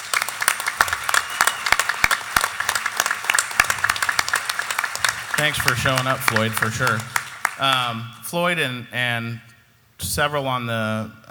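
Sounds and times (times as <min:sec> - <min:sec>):
round of applause: 0:00.0 - 0:08.0
speech: 0:05.4 - 0:11.3.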